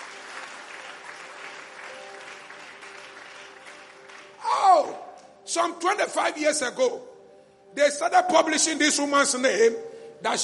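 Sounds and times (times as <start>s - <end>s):
audience clapping: 0.0s - 4.5s
speech: 5.5s - 7.1s, 7.8s - 10.4s.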